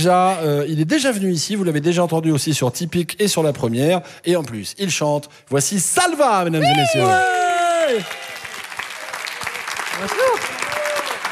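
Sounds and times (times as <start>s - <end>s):
speech: 0.0s - 8.3s, 10.0s - 10.5s
voices whooping or calling out: 6.6s - 8.5s, 10.0s - 11.2s
audience applause: 6.6s - 11.2s.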